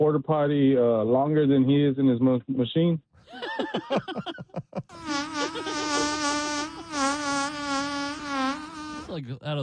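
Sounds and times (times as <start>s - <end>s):
speech: 0.0s - 5.8s, 9.1s - 9.6s
laughter: 3.3s - 7.0s
long buzzing fart: 4.9s - 9.2s
vocal bursts: 4.9s - 9.3s.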